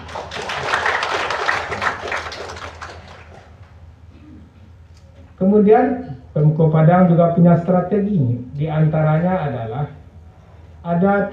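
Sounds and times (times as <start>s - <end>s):
audience applause at a Padang city government event: 0.0s - 3.7s
speech: 5.4s - 10.0s, 10.8s - 11.3s.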